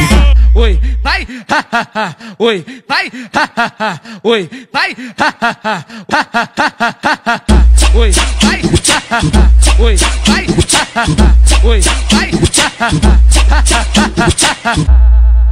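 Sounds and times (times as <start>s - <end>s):
baile funk music: 0.0s - 0.9s, 7.5s - 15.4s
laughter: 1.4s - 2.2s, 3.3s - 4.0s, 5.1s - 7.5s.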